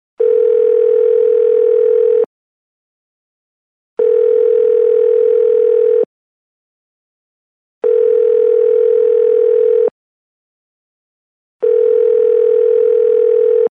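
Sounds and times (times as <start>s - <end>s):
telephone dial tone: 0.2s - 2.3s, 4.0s - 6.1s, 7.8s - 10.0s, 11.6s - 13.7s.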